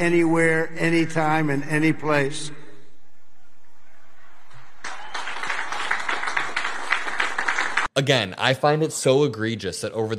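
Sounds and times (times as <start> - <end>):
speech: 0.0 - 2.6, 8.0 - 10.1
weak applause from military academy graduates: 4.2 - 8.1.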